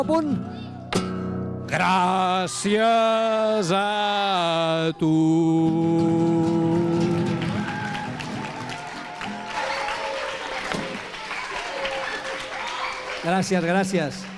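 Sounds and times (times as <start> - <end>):
speech: 0.0 - 0.5, 1.7 - 7.4, 13.2 - 14.3
applause: 6.8 - 14.3.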